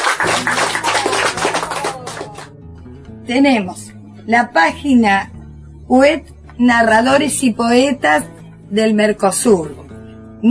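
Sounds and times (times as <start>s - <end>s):
audience applause: 0.0s - 2.5s
speech: 3.3s - 9.8s.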